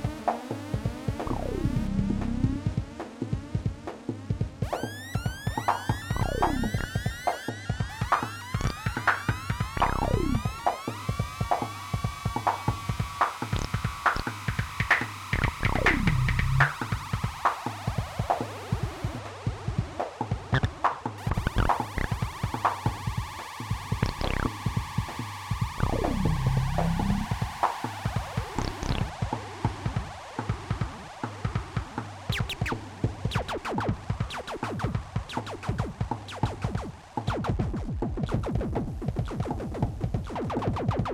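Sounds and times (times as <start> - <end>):
noise music jam: 0.0 - 41.1.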